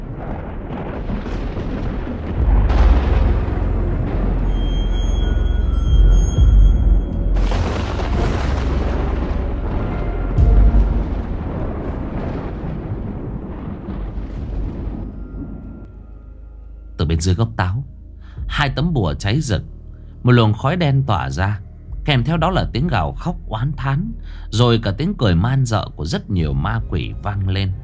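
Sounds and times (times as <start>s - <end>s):
lightning strike explosion boom: 0.0s - 15.9s
speech: 17.2s - 17.9s, 18.5s - 27.8s.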